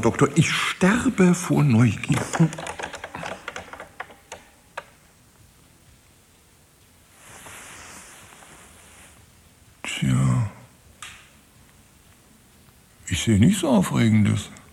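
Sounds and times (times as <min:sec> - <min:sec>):
speech: 0:00.0 - 0:02.7, 0:13.2 - 0:14.6
hiss: 0:00.0 - 0:14.7
computer keyboard typing: 0:01.9 - 0:04.9.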